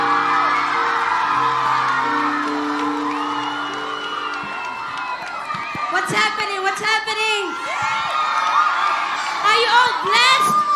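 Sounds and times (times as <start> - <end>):
audience clapping: 0.0 - 6.1
high whoops and shouts: 0.0 - 6.4, 7.3 - 10.7.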